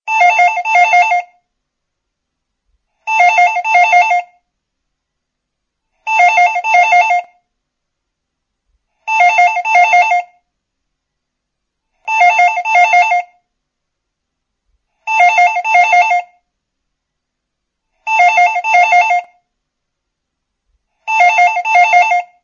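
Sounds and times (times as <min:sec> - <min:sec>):
special old phone: 0:00.0 - 0:01.4, 0:03.0 - 0:04.4, 0:06.0 - 0:07.4, 0:09.0 - 0:10.4, 0:12.0 - 0:13.4, 0:15.0 - 0:16.4, 0:18.0 - 0:19.4, 0:21.0 - 0:22.4.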